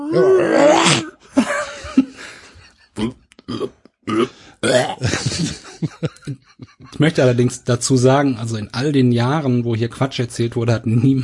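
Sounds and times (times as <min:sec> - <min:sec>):
voice imitating a male cat's call: 0:00.0 - 0:01.2
speech: 0:00.1 - 0:01.1, 0:07.0 - 0:11.2
laughter: 0:01.3 - 0:03.0, 0:05.0 - 0:07.5.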